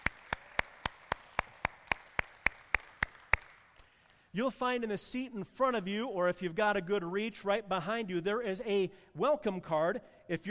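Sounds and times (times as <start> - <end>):
audience clapping for guests: 0.0 - 3.8
speech: 4.4 - 10.4.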